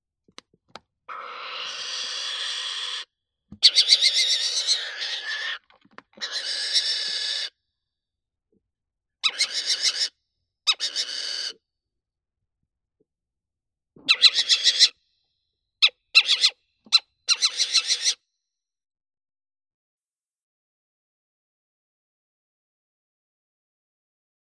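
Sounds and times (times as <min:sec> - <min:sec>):
little owl Athene noctua alarm calls: 0:01.1 - 0:05.6, 0:06.2 - 0:07.6, 0:09.2 - 0:11.6, 0:14.0 - 0:15.0, 0:15.8 - 0:18.2.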